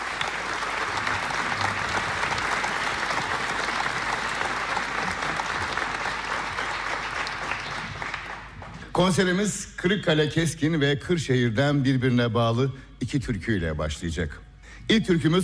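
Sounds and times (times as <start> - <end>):
folk-song concert audience applauding a conductor: 0.0 - 9.2
speech: 9.0 - 15.4.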